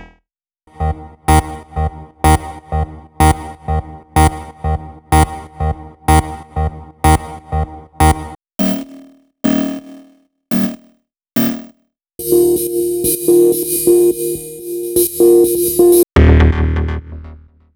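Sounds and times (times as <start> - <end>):
tech house music: 0.7 - 8.4, 12.2 - 17.2.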